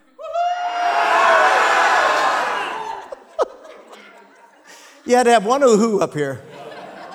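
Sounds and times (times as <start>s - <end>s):
audience shouting together: 0.2s - 3.2s
laughter: 0.2s - 7.1s
speech: 5.1s - 6.5s.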